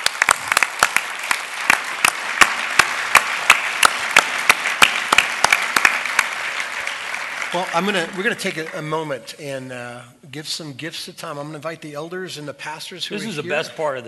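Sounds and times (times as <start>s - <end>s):
audience applause: 0.0s - 9.0s
speech: 7.6s - 14.0s.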